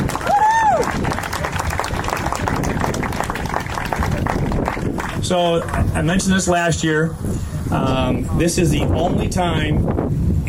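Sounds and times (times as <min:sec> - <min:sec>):
audience applause: 0:00.0 - 0:06.0
speech: 0:05.3 - 0:10.4.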